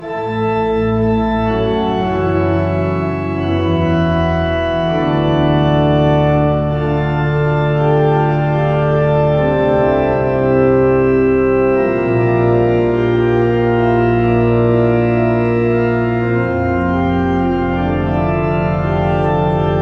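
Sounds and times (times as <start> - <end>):
organ interlude: 0.0 - 19.8.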